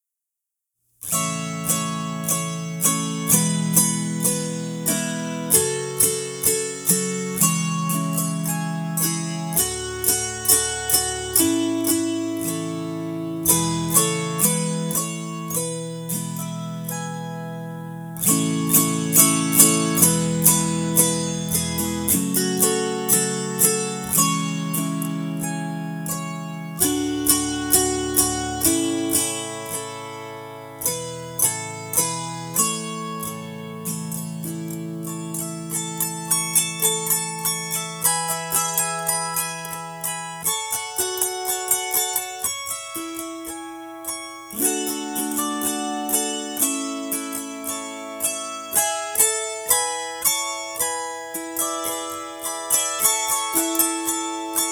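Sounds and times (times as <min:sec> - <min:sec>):
christmas song: 0:01.0 - 0:54.7.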